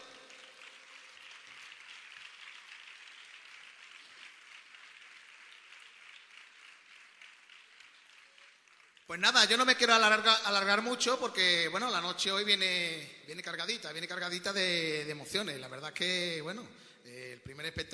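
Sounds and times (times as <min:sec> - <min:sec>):
audience applause: 0:00.0 - 0:09.6
speech: 0:09.1 - 0:17.9.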